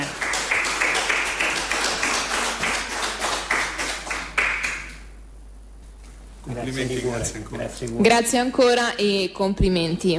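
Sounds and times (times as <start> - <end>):
audience applause: 0.0 - 5.1
speech: 6.6 - 10.1.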